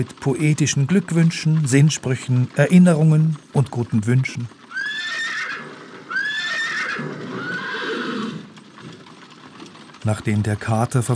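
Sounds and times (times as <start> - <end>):
speech: 0.0 - 4.6, 10.0 - 11.1
hooves and rolling wheels of a horse-drawn stagecoach: 0.0 - 11.1
horse neighing: 4.7 - 8.7.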